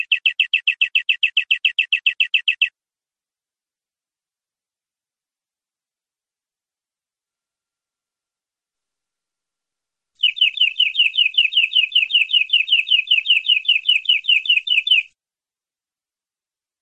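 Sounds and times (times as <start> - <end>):
canary singing: 0.0 - 2.7, 10.2 - 15.1.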